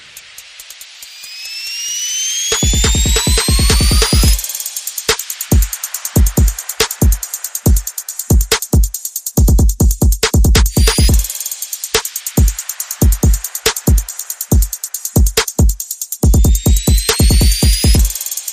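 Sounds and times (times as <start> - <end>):
percussion: 0.0 - 18.5
sound effects: 1.2 - 4.4.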